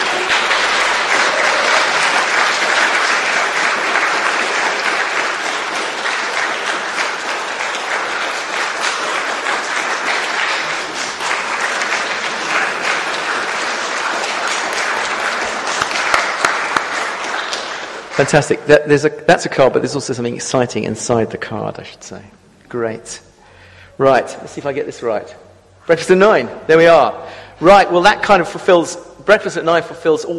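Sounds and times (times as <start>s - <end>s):
round of applause: 0.0s - 18.6s
speech: 18.2s - 23.3s, 24.0s - 30.3s.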